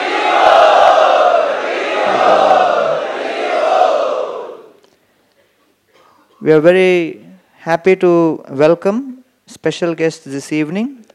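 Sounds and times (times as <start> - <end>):
crowd loudly chanting prayers in unison at a devotional gathering: 0.0 - 4.8
speech: 6.4 - 11.0.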